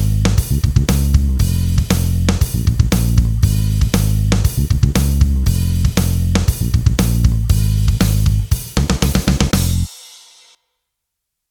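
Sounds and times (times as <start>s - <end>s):
bass: 0.0s - 9.9s
drum kit: 0.0s - 10.6s.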